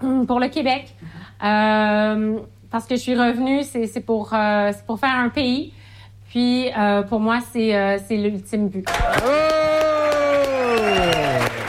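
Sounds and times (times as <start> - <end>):
speech: 0.1 - 9.8
audience applause: 8.9 - 11.6.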